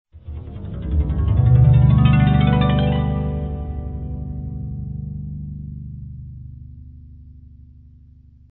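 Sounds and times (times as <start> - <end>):
harp: 0.2 - 7.4.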